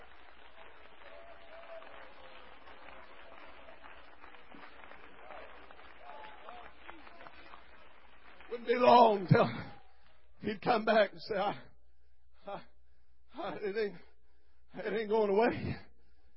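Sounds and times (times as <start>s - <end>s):
audience clapping hands: 0.0s - 10.9s
speech: 8.7s - 9.6s, 10.4s - 11.7s, 13.5s - 14.1s, 14.8s - 15.9s.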